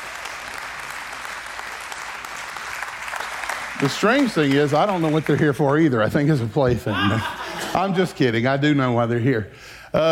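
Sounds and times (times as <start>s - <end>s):
audience applauding to welcome a pastor at a morning gathering: 0.0s - 6.4s
speech: 3.8s - 10.1s
laughter: 6.7s - 8.2s.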